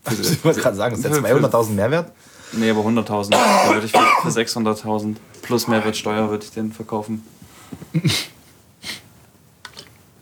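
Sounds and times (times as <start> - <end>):
speech: 0.1 - 8.3
person coughing: 3.3 - 4.4, 7.9 - 8.4.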